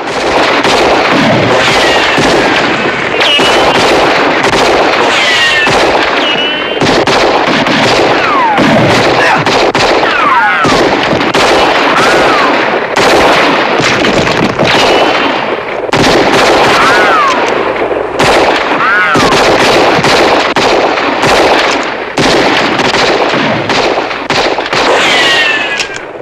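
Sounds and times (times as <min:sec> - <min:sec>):
gunfire in a shootout between a posse and outlaws: 0:00.0 - 0:26.1
voices: 0:01.6 - 0:03.9, 0:05.0 - 0:06.8, 0:08.0 - 0:10.9, 0:11.8 - 0:12.8, 0:16.6 - 0:17.8, 0:18.5 - 0:19.6.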